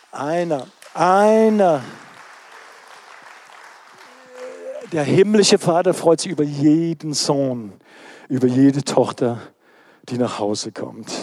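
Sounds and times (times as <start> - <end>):
speech: 0.1 - 2.0, 4.9 - 11.2
audience applause at a church service: 0.7 - 5.6
audience voices cheering at a church service: 3.9 - 5.2.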